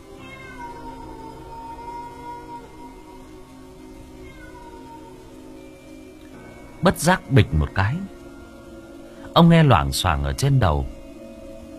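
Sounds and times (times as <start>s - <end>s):
steady rain-like hiss: 0.0s - 11.7s
cat meowing: 0.2s - 3.1s, 4.1s - 5.5s
speech: 6.8s - 8.2s, 9.4s - 11.0s.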